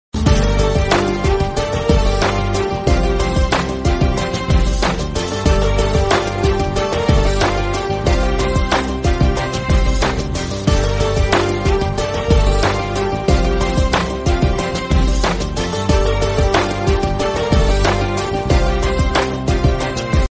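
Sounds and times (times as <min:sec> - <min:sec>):
background music ringtone: 0:00.2 - 0:20.3.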